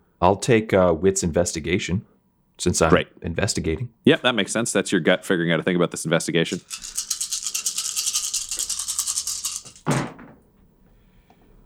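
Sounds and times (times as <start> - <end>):
speech: 0.2 - 7.1
many dice being rolled: 6.5 - 9.9.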